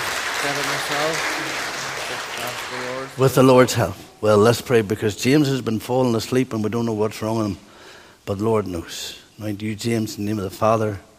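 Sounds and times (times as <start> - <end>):
round of applause: 0.0 - 3.6
speech: 0.4 - 11.1.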